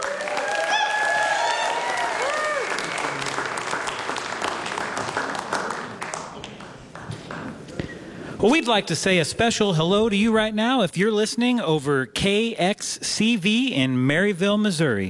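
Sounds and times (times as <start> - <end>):
cheers: 0.0 - 3.7
audience applause for a band: 0.0 - 7.8
speech: 8.4 - 15.0.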